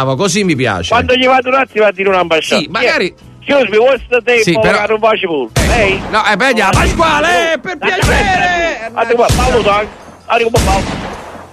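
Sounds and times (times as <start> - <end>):
speech: 0.0 - 11.0
people talking excitedly: 0.8 - 10.4
pistol shots fired near someone's feet: 5.6 - 7.1, 8.0 - 8.5, 9.2 - 10.0, 10.6 - 11.5.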